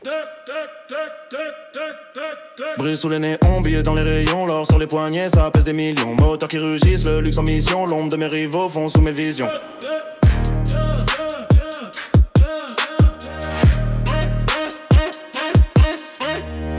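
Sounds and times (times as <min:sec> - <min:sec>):
trap rap music: 0:00.0 - 0:16.6.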